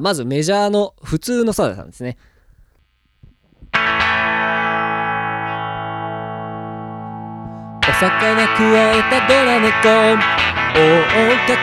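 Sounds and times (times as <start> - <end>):
speech: 0.0 - 2.3, 8.0 - 11.6
distorted electric guitar through an effects unit: 3.7 - 11.6.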